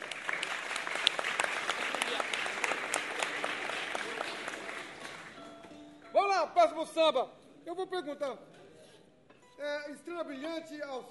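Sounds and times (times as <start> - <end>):
audience applause: 0.0 - 5.4
speech: 6.7 - 8.5, 9.6 - 11.0.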